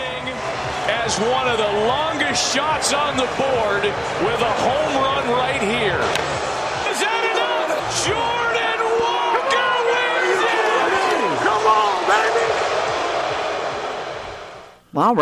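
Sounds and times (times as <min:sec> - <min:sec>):
stadium crowd noise in broadcast: 0:00.0 - 0:14.8
speech: 0:01.0 - 0:07.2, 0:15.0 - 0:15.1.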